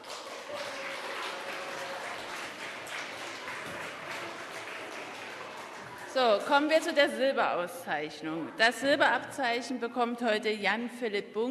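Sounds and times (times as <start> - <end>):
audience applause: 0.0 - 6.9
speech: 6.2 - 11.4.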